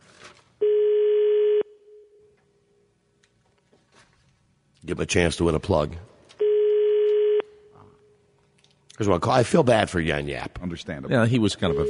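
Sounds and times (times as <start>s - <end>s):
foreign telephone ring tone: 0.6s - 1.7s, 6.4s - 7.4s
speech: 4.9s - 6.1s, 9.0s - 11.8s.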